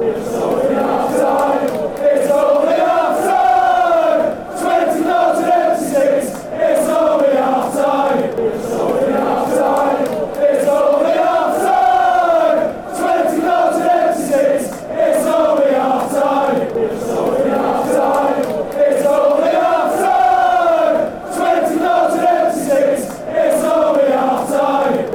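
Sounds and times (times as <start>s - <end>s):
fans chanting: 0.0s - 25.1s.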